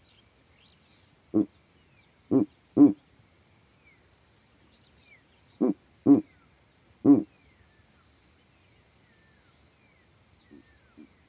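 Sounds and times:
steady high insect trill: 0:00.0 - 0:11.2
speech: 0:01.3 - 0:01.5
owl hooting: 0:02.3 - 0:03.0, 0:05.6 - 0:06.3, 0:07.0 - 0:07.3.

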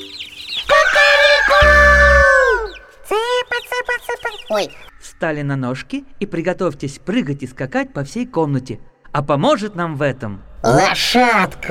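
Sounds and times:
rooster crowing: 0:00.4 - 0:02.8
speech: 0:04.5 - 0:11.7.

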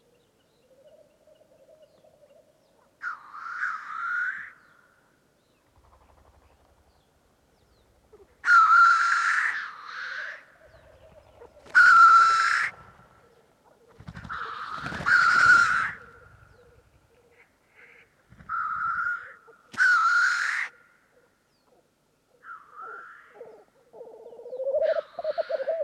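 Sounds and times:
black grouse hoarse hissing calls: 0:08.1 - 0:13.3, 0:14.1 - 0:20.8, 0:22.7 - 0:25.8.

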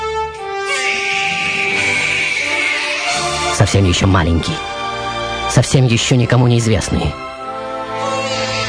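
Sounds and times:
newborn baby crying: 0:00.5 - 0:03.6, 0:07.9 - 0:08.6
speech: 0:03.7 - 0:04.8, 0:05.5 - 0:07.3.

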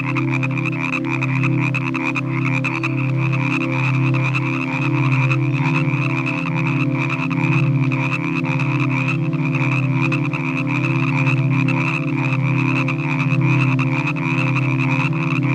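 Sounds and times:
frogs calling in a chorus in the evening: 0:00.0 - 0:15.5.

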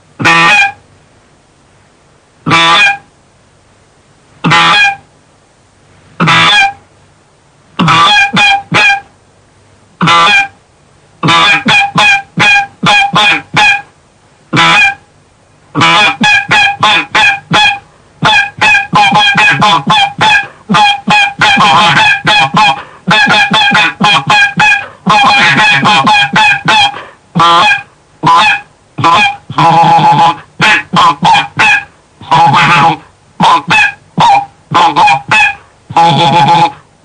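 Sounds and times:
flock of geese honking: 0:00.2 - 0:00.8, 0:02.5 - 0:03.1, 0:04.5 - 0:05.1, 0:06.2 - 0:06.8, 0:07.8 - 0:09.1, 0:10.0 - 0:10.6, 0:11.2 - 0:13.9, 0:14.6 - 0:15.0, 0:15.8 - 0:37.0.

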